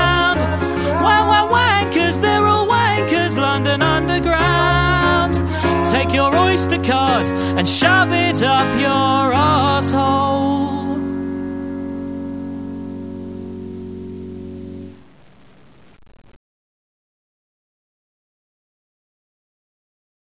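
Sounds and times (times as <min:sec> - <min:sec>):
music: 0:00.0 - 0:15.0.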